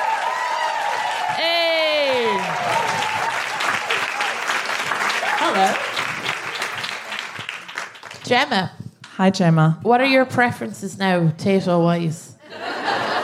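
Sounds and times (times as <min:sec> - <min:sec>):
whooping cheer: 0:00.0 - 0:06.7
audience applause in a radio studio: 0:00.0 - 0:08.2
speech: 0:08.3 - 0:12.2
laughter: 0:12.4 - 0:13.2.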